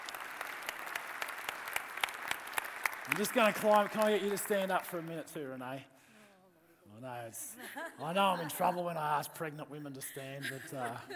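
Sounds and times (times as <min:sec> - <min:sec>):
audience clapping: 0:00.0 - 0:05.4
speech: 0:03.1 - 0:05.9, 0:07.0 - 0:11.1
laughter: 0:07.4 - 0:08.9, 0:10.2 - 0:11.1.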